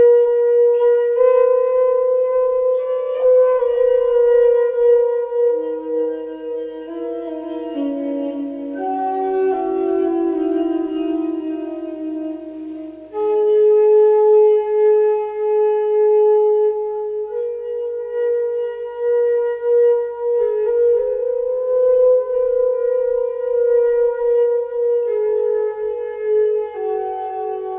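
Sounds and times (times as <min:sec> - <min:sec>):
flute music: 0:00.0 - 0:27.7.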